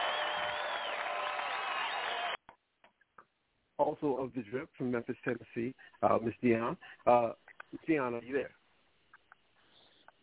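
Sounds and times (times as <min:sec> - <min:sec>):
applause: 0:00.0 - 0:02.4
speech: 0:03.9 - 0:08.6.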